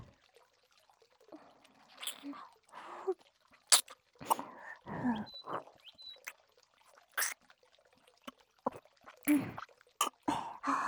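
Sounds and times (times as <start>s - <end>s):
ASMR ear licking: 2.0s - 2.4s, 3.7s - 6.4s, 7.1s - 7.4s, 8.3s - 10.7s.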